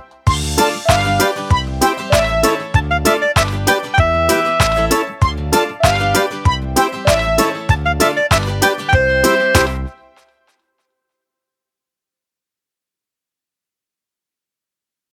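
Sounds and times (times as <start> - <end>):
karaoke singing: 0.0 - 9.9.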